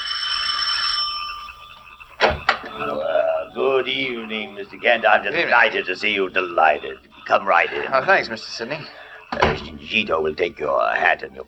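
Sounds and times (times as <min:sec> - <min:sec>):
doorbell ringing at heavy oak front door: 0:00.0 - 0:07.0
laughter: 0:01.4 - 0:11.4
speech: 0:03.8 - 0:11.4.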